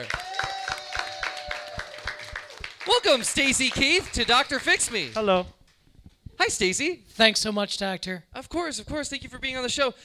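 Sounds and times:
audience applause welcoming a guest: 0.0s - 5.2s
speech: 2.9s - 5.6s, 6.4s - 10.0s.

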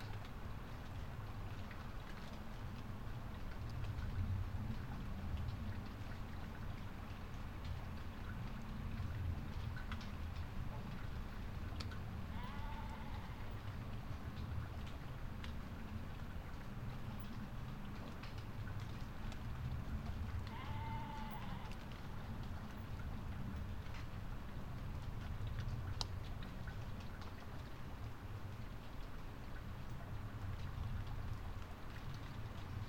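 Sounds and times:
night rain on a drystone wall in Settle, North Yorkshire: 0.0s - 32.8s.

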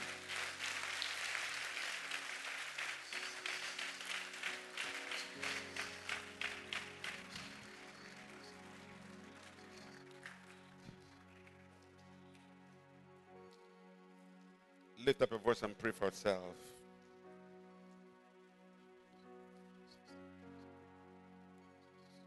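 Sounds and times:
audience clapping: 0.0s - 12.4s
speech: 15.1s - 16.8s.

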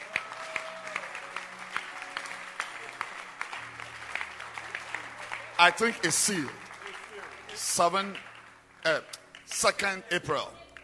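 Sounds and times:
audience clapping hands: 0.0s - 10.8s
speech: 5.6s - 6.6s, 7.8s - 10.6s.

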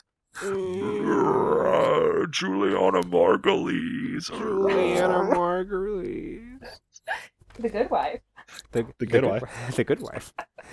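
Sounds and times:
speech: 0.4s - 1.4s, 2.3s - 6.8s, 7.6s - 10.7s
stomach growling: 0.4s - 6.6s.

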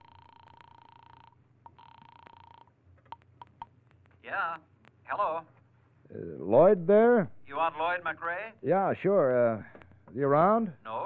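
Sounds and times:
telephone number being dialed: 0.0s - 3.7s
faint clicks: 0.5s - 4.2s
speech: 4.2s - 11.0s.

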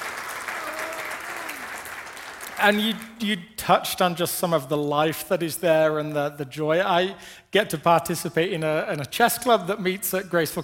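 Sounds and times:
audience applause: 0.0s - 3.2s
speech: 2.6s - 10.6s.

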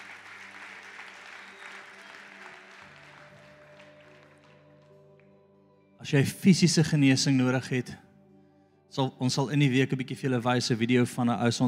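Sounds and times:
audience clapping hands: 0.0s - 5.3s
low sustained musical tone: 1.8s - 11.6s
speech: 6.0s - 8.1s, 9.0s - 11.6s.

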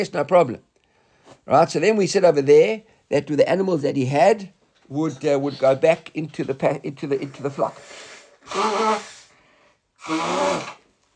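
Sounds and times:
speech: 0.0s - 0.7s, 1.4s - 9.1s, 10.0s - 10.8s
person blowing their nose: 7.4s - 10.9s.

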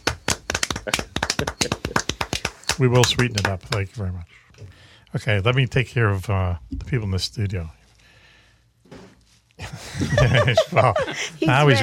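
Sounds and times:
people clapping: 0.0s - 4.0s
laughter: 0.7s - 2.1s, 9.6s - 11.8s
speech: 0.8s - 1.7s, 2.8s - 7.8s, 10.0s - 11.8s.

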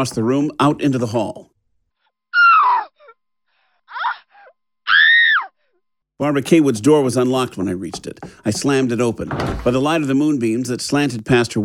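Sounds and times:
speech: 0.0s - 1.5s, 6.2s - 11.6s
woman's terrified screaming: 2.3s - 3.2s, 3.9s - 5.6s.

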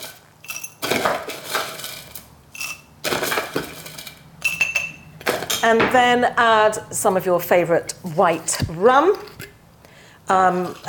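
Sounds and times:
crushed ice spooned into a glass for a keto mojito: 0.0s - 5.0s
speech: 5.6s - 9.3s, 10.3s - 10.8s.

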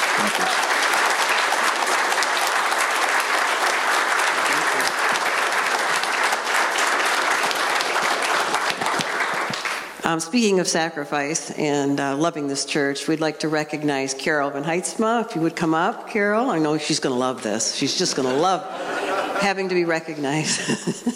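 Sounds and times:
audience applauding: 0.0s - 10.0s
laughter: 4.4s - 5.2s, 17.9s - 21.1s
speech: 10.1s - 21.1s.

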